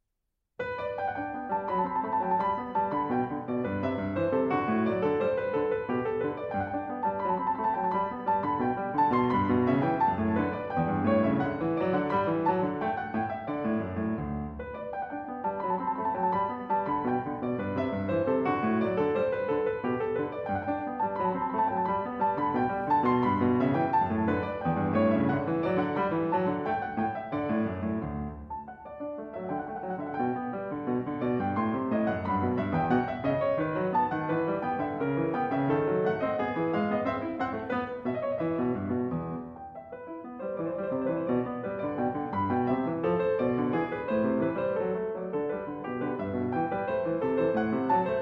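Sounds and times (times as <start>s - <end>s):
bourrée: 0.6s - 48.2s.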